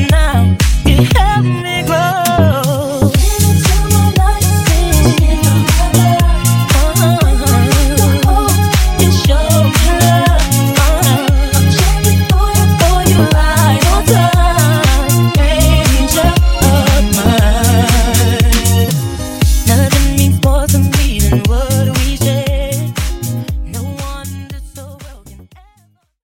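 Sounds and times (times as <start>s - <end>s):
disco funk edit: 0.0s - 26.0s.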